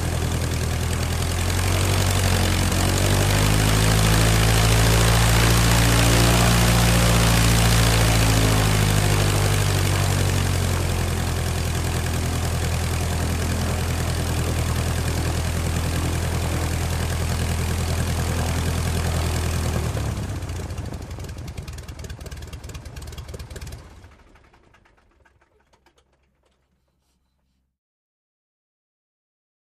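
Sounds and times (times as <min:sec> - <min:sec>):
Tiger Moth fans whirring: 0:00.0 - 0:20.9
Tiger Moth propellers growling and humming: 0:00.0 - 0:26.5
Tiger Moth engine revving, idling and sputtering to a stop: 0:00.0 - 0:26.6.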